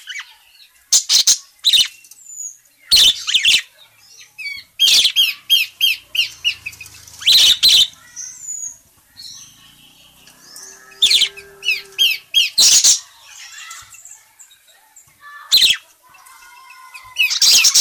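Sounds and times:
parakeet chattering: 0.9s - 1.9s, 2.9s - 3.7s, 4.4s - 13.8s, 15.5s - 15.9s, 16.8s - 17.8s.

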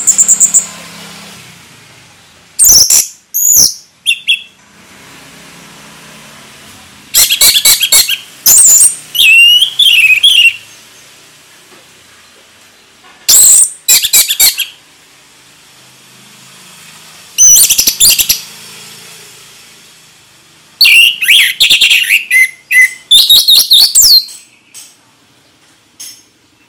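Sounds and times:
orange-headed thrush song: 0.0s - 1.0s, 2.6s - 4.6s, 7.1s - 10.9s, 13.3s - 14.8s, 17.4s - 18.5s, 20.8s - 24.7s.

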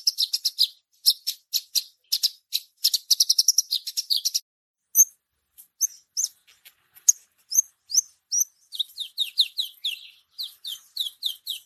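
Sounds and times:
bushlark singing continuously: 0.0s - 11.6s.

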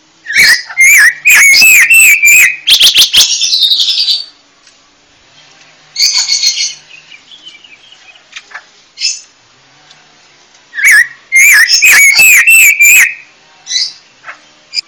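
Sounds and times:
panca warna bird chirping: 0.2s - 4.4s, 5.3s - 9.3s, 10.7s - 14.8s.

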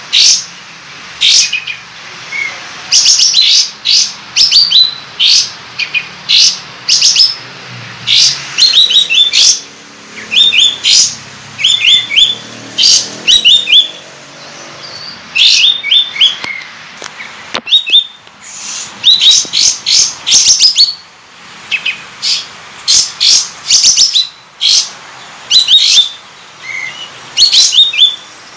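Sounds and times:
sooty-headed bulbul singing: 1.2s - 21.1s, 21.7s - 28.4s.

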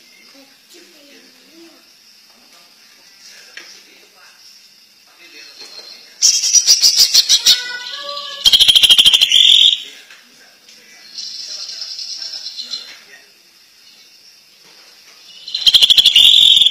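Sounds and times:
greater green leafbird singing: 5.4s - 10.0s, 11.0s - 13.0s, 15.2s - 16.6s.

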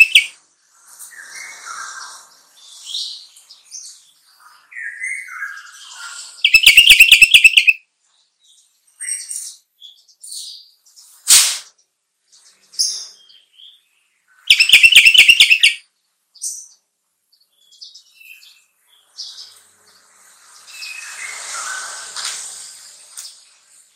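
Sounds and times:
sooty-headed bulbul singing: 0.0s - 0.4s, 6.4s - 7.8s, 14.5s - 15.8s.

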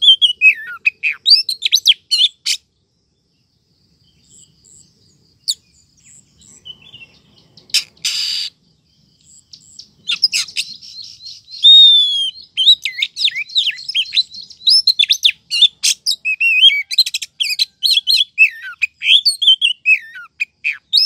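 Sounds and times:
Oriental magpie-robin rising whistle: 0.0s - 2.6s, 7.7s - 8.6s, 10.1s - 21.0s.

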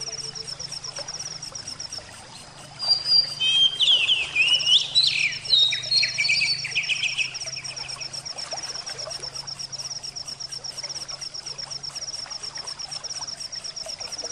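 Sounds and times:
oriental magpie-robin whistled song: 2.8s - 8.0s.

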